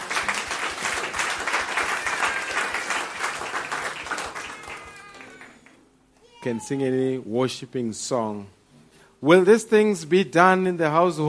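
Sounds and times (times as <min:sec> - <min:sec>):
round of applause: 0:00.0 - 0:05.8
speech: 0:06.4 - 0:08.6, 0:09.2 - 0:11.2.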